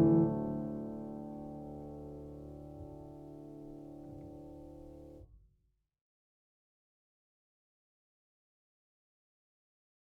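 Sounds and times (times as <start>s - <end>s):
piano performance: 0.0s - 5.2s.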